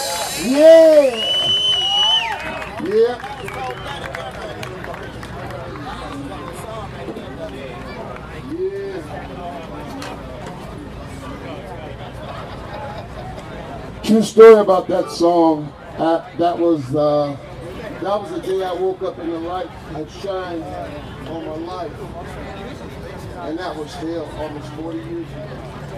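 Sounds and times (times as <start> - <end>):
festival crowd applause and cheering: 0.0 - 8.6
speech: 0.4 - 1.3, 14.1 - 22.6, 23.4 - 25.8.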